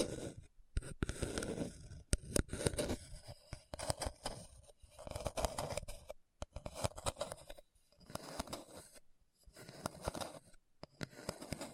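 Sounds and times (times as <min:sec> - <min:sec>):
scratching a hard bumpy surface: 0:00.0 - 0:11.7.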